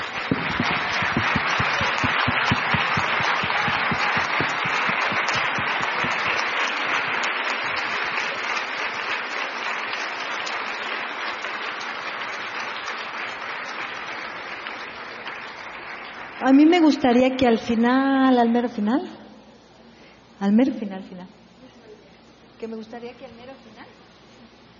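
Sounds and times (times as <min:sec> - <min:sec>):
audience applause: 0:00.0 - 0:16.5
speech: 0:16.5 - 0:19.2, 0:20.4 - 0:21.4, 0:22.6 - 0:24.0.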